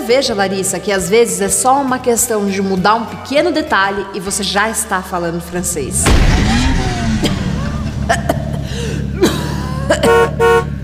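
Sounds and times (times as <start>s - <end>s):
speech: 0.1s - 7.4s, 8.1s - 8.4s
low engine hum: 4.3s - 10.8s
scattered thumps: 5.5s - 8.7s
car horn honking as a driver arrives: 10.0s - 10.8s.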